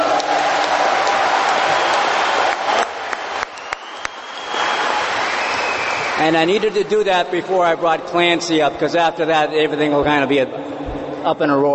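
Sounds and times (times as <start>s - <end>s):
audience applause: 0.0s - 6.8s
speech: 6.2s - 11.7s.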